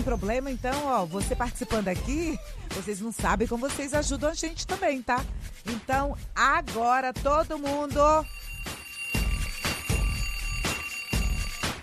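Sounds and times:
speech: 0:00.0 - 0:08.8
bell ringing: 0:08.2 - 0:11.8.

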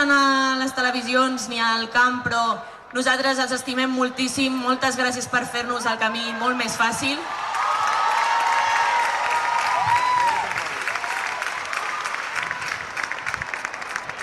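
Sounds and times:
speech: 0:00.0 - 0:07.4
large stadium crowd applauding: 0:07.4 - 0:14.2
high whistle or cheer: 0:07.5 - 0:13.4.

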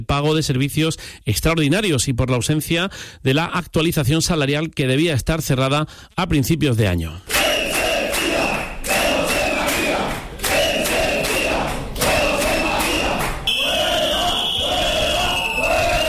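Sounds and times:
speech: 0:00.0 - 0:07.4
crowd of protesters chanting in council chamber: 0:07.3 - 0:16.0.

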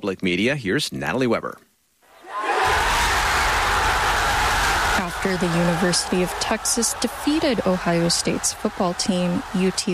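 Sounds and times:
speech: 0:00.0 - 0:01.7, 0:05.0 - 0:09.9
large football stadium crowd cheering: 0:02.1 - 0:09.9.

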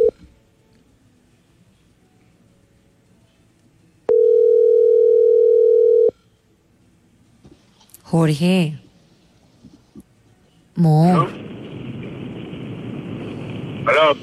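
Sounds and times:
telephone ringing tone while calling: 0:04.1 - 0:06.2
speech: 0:08.1 - 0:08.8, 0:10.8 - 0:11.4, 0:13.9 - 0:14.2
hiss: 0:11.4 - 0:14.2.

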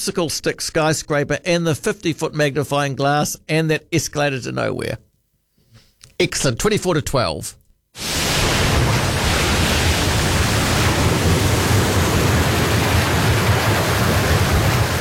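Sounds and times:
speech: 0:00.0 - 0:05.1, 0:06.2 - 0:08.2
ocean waves crashing at sea: 0:08.0 - 0:15.0.

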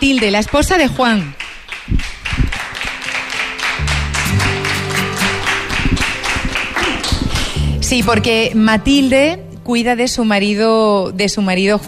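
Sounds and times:
speech: 0:00.0 - 0:02.2, 0:07.9 - 0:11.8
audience applause: 0:00.0 - 0:07.8.

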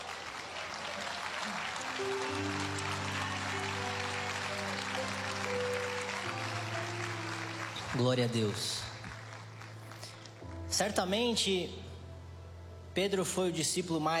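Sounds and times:
audience clapping hands: 0:00.0 - 0:11.0
speech: 0:02.0 - 0:02.5, 0:07.9 - 0:08.9, 0:10.8 - 0:11.9, 0:13.0 - 0:14.1.

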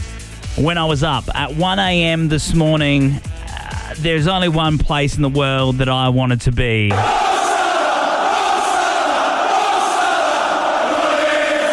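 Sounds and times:
speech: 0:00.6 - 0:03.3, 0:03.9 - 0:07.2
football fans roaring at Anfield, Liverpool: 0:06.9 - 0:11.7.

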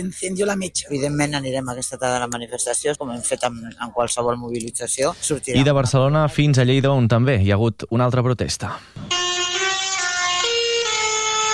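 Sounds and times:
street din: 0:00.0 - 0:07.0, 0:08.7 - 0:11.5
speech: 0:00.0 - 0:09.2
tractor horns at street protest blaring: 0:09.1 - 0:11.5.

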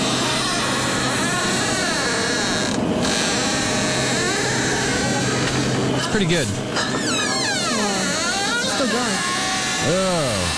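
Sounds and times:
door creaking and squeaking: 0:00.1 - 0:10.5
speech: 0:06.2 - 0:07.0, 0:08.9 - 0:10.5.

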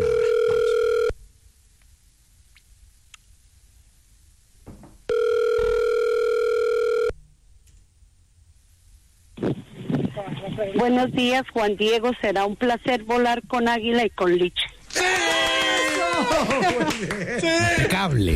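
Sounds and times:
telephone ringing tone during call transfer: 0:00.0 - 0:01.1, 0:05.1 - 0:07.1
speech: 0:10.6 - 0:15.2, 0:16.3 - 0:18.3
laughter: 0:14.9 - 0:18.1.

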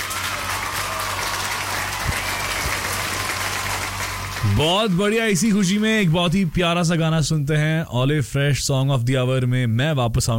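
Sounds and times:
crowd clapping: 0:00.0 - 0:07.0
speech: 0:04.4 - 0:10.3.

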